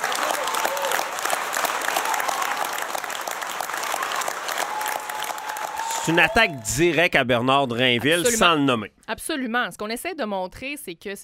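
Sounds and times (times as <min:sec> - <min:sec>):
audience ovation after a political speech: 0:00.0 - 0:07.1
speech: 0:06.1 - 0:11.2.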